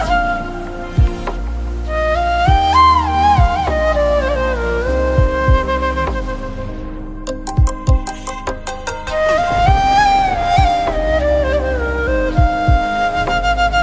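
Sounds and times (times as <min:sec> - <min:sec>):
flute: 0:00.0 - 0:13.8
rain: 0:00.0 - 0:13.8.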